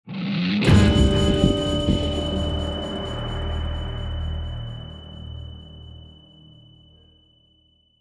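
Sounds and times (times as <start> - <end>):
shock stinger: 0.7 - 7.1.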